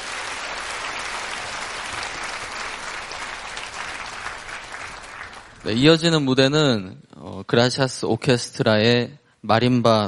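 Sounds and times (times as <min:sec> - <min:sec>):
applause: 0:00.0 - 0:06.0
speech: 0:05.6 - 0:10.0.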